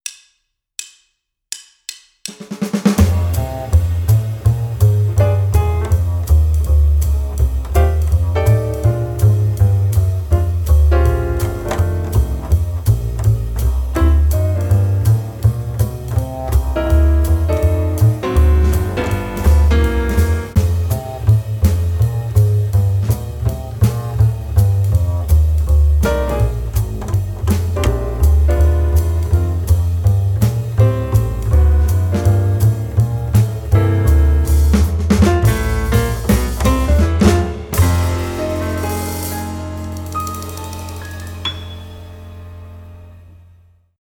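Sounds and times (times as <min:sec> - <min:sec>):
rhythm guitar: 0:03.0 - 0:41.6.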